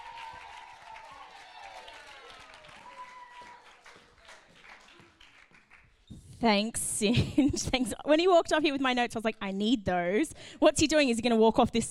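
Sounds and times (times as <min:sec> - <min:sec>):
audience applause: 0:00.0 - 0:06.0
speech: 0:06.4 - 0:11.8.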